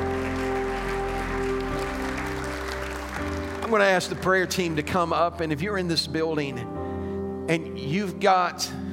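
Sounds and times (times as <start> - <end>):
audience clapping hands in praise: 0.0 - 5.0
speech: 3.7 - 6.9, 7.5 - 8.8.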